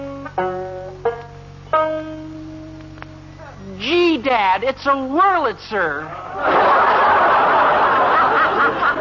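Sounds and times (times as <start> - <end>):
banjo plucking tuning notes: 0.0 - 6.0
speech: 4.2 - 7.3
laughter: 6.1 - 9.0.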